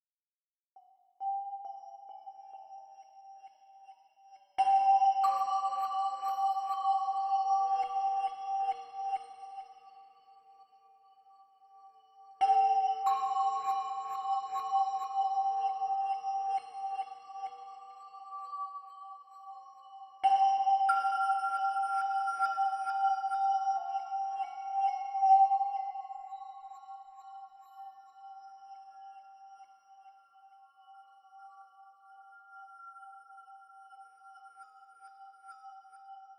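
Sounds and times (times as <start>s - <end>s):
music chimes: 0.8s - 36.3s.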